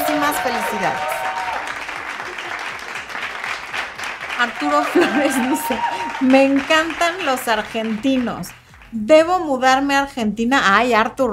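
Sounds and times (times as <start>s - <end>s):
crowd applause celebrating a listener's engagement: 0.0s - 9.0s
speech: 0.3s - 1.2s, 4.4s - 11.3s
laughter: 4.5s - 6.5s.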